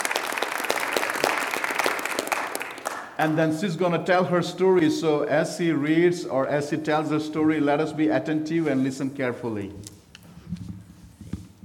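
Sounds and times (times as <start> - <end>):
audience clapping: 0.0 - 3.4
speech: 3.2 - 9.9.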